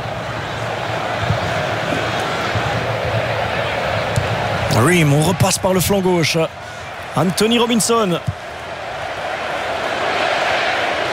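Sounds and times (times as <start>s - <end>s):
American crowd cheering in a Los Angeles football stadium: 0.0s - 11.1s
speech: 4.8s - 8.4s.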